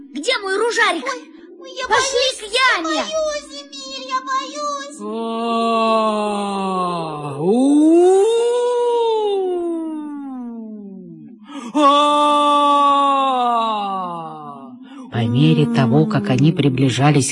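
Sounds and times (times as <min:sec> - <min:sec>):
speech: 0:00.2 - 0:07.8, 0:15.5 - 0:17.3
wolf howling in a wolf pit in the forest: 0:05.0 - 0:17.3.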